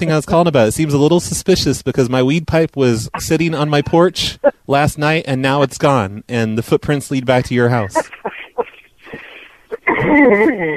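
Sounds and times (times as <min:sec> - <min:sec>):
speech: 0:00.0 - 0:08.5, 0:10.0 - 0:10.7
person coughing: 0:07.9 - 0:10.7.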